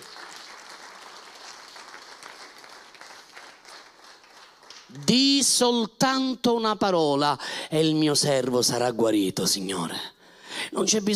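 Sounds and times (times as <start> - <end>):
crowd applause: 0.0 - 4.9
speech: 4.9 - 10.2, 10.8 - 11.1.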